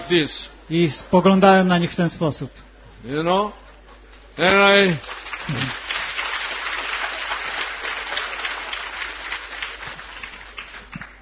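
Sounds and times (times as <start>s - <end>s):
speech: 0.1s - 3.6s, 4.4s - 5.8s
audience clapping: 4.5s - 11.2s.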